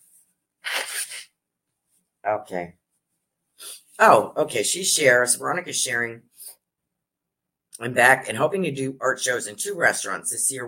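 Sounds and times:
person blowing nose: 0.6 - 1.3
speech: 2.2 - 2.8, 4.0 - 6.6, 7.8 - 10.6.

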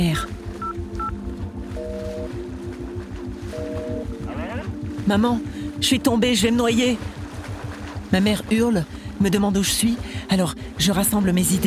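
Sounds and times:
rhythmic rumbling and throbbing noise: 0.0 - 11.6
mobile phone keypad beeps: 0.6 - 1.1
speech: 5.1 - 7.2, 8.1 - 11.6.

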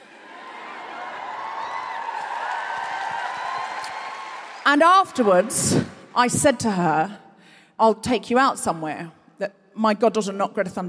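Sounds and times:
audience cheering and whooping: 0.0 - 6.2
speech: 4.7 - 7.2, 7.8 - 10.8.

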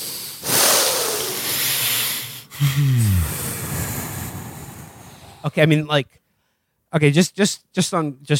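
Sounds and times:
deep breathing in and out: 0.0 - 5.6
speech: 2.6 - 4.0, 5.4 - 6.2, 6.9 - 8.3.

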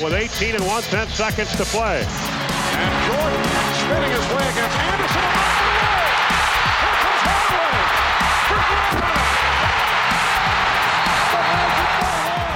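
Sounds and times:
speech: 0.0 - 5.4
basketball arena crowd roaring: 4.2 - 12.5.

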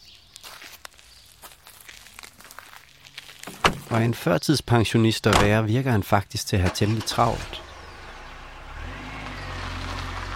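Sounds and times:
speech: 3.9 - 7.6
small car driving off: 6.6 - 10.3.

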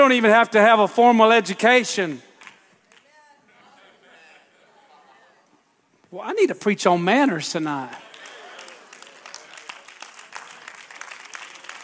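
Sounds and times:
speech: 0.0 - 2.3, 6.1 - 8.0
a few people clapping hands: 2.4 - 3.2, 8.0 - 11.8.

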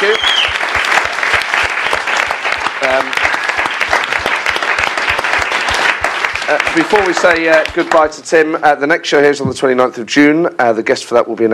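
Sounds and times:
audience applause: 0.0 - 8.2
speech: 6.8 - 11.5.

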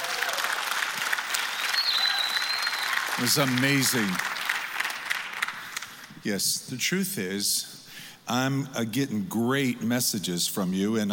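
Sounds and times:
audience clapping hands: 0.0 - 6.2
speech: 3.2 - 4.3, 6.2 - 11.1.

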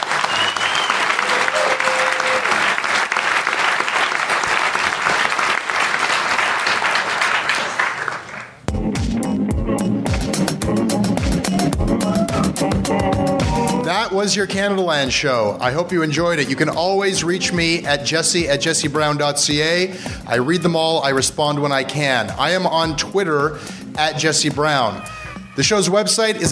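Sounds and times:
large live audience applause: 0.0 - 8.6
rhythmic music: 8.6 - 26.5
speech: 14.3 - 26.5.

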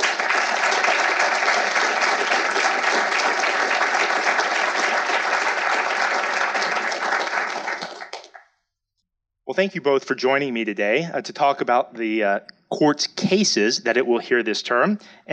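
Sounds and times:
audience applause welcoming two speakers to the stage: 0.0 - 8.4
speech: 9.6 - 15.3.

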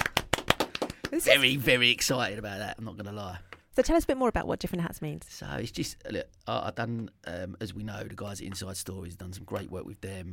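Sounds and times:
round of applause: 0.0 - 1.5
speech: 1.1 - 10.3.

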